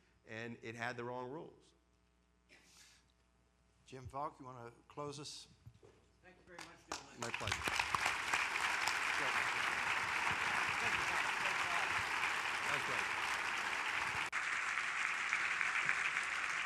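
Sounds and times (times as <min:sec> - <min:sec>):
speech: 0:00.3 - 0:01.8, 0:03.9 - 0:08.0, 0:09.2 - 0:11.6, 0:12.7 - 0:13.4
audience applause: 0:06.9 - 0:16.6.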